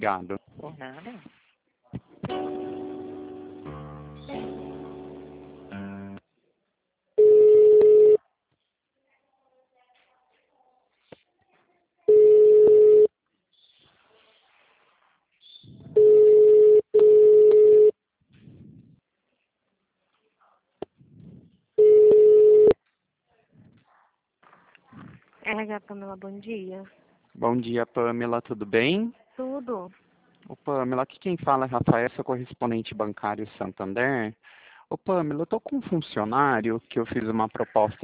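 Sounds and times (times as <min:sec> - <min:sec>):
speech: 0:00.0 - 0:02.8, 0:25.5 - 0:38.0
telephone ringing while a call is transferred: 0:07.2 - 0:08.2, 0:12.1 - 0:13.1, 0:16.0 - 0:17.9, 0:21.8 - 0:22.8.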